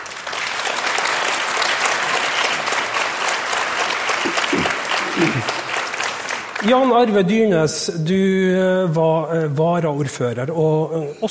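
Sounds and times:
audience applause: 0.0 - 6.9
speech: 5.2 - 5.6, 6.6 - 11.2.

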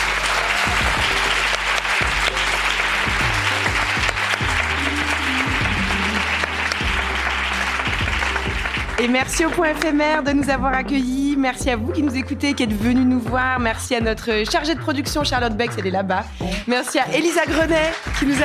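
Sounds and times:
audience applause: 0.0 - 10.0, 16.5 - 18.4
speech: 9.0 - 18.4.

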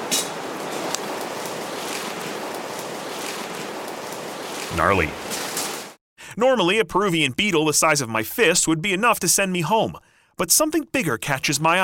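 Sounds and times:
river water flowing: 0.0 - 6.0
speech: 4.7 - 5.3, 6.4 - 11.8.

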